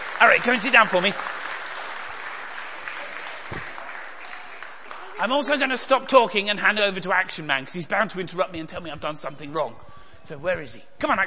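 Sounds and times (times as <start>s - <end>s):
crowd clapping: 0.0s - 5.9s
speech: 0.2s - 1.4s, 5.2s - 11.2s.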